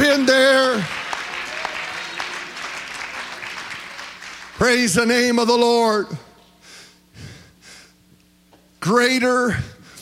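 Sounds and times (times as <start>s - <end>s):
audience clapping hands: 0.0s - 5.4s
speech: 4.6s - 6.2s, 8.8s - 9.7s.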